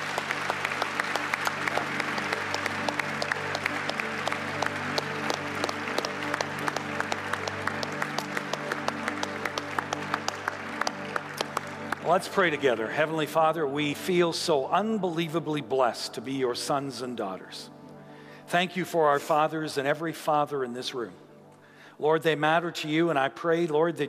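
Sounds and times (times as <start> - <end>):
crowd clapping in a large room: 0.0 - 13.2
speech: 12.1 - 17.7, 18.5 - 21.2, 22.0 - 24.0.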